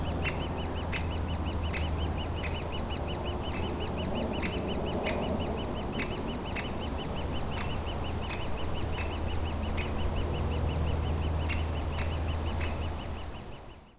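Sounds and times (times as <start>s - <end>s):
woodpecker nestlings chirping from their cavity in a dead tree trunk: 0.0s - 13.9s.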